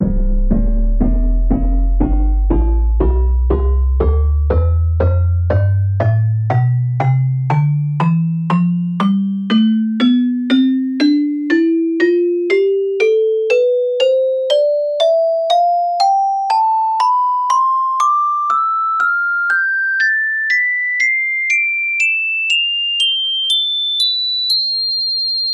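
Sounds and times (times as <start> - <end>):
celesta scale: 0.0 - 24.2.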